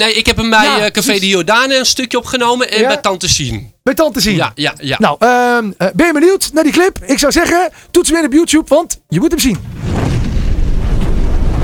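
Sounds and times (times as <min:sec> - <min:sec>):
speech: 0:00.0 - 0:10.0
thunder: 0:09.6 - 0:11.6.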